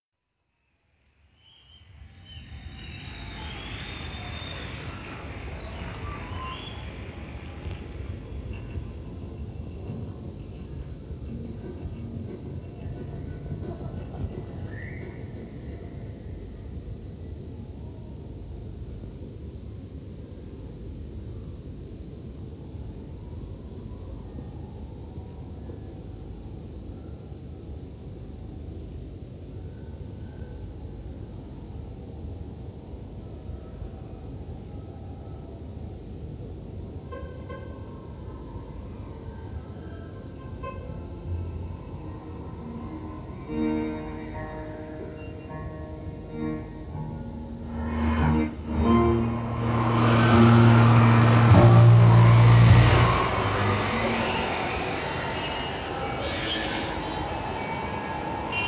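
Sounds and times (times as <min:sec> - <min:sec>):
instruments tuning during a soundcheck: 0:41.3 - 0:58.6.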